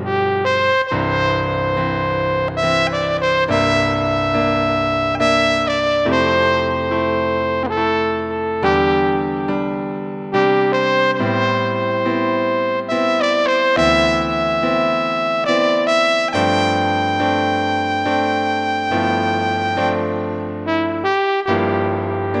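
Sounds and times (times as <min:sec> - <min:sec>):
trombone: 0:00.1 - 0:09.6, 0:10.4 - 0:22.3.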